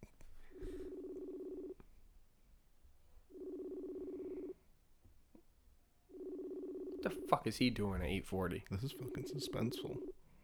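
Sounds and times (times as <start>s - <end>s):
ringback tone of an unanswered phone call: 0.5s - 1.8s, 3.3s - 4.6s, 6.1s - 10.1s
speech: 7.0s - 10.2s.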